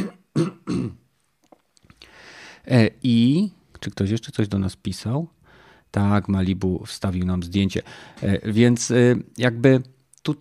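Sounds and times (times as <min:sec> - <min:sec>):
man clearing throat: 0:00.0 - 0:01.0
speech: 0:02.7 - 0:10.3.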